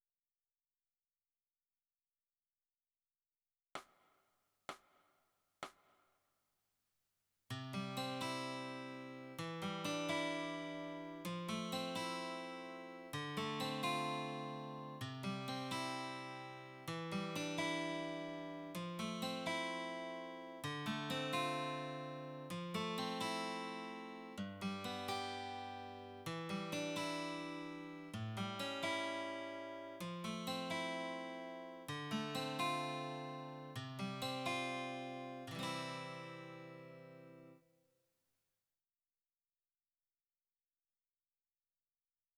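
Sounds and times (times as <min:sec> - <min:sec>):
guitar: 0:07.5 - 0:37.6.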